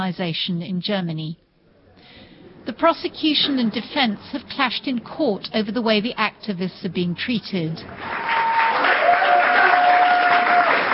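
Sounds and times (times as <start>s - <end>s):
speech: 0.0s - 1.4s, 2.1s - 8.4s
supporters cheering and shouting in a courtroom: 8.0s - 10.9s.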